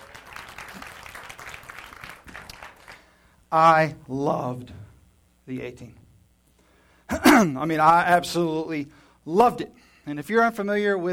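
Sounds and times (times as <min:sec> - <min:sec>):
audience applauding: 0:00.0 - 0:03.1
speech: 0:03.5 - 0:04.9, 0:05.5 - 0:06.0, 0:07.4 - 0:11.1.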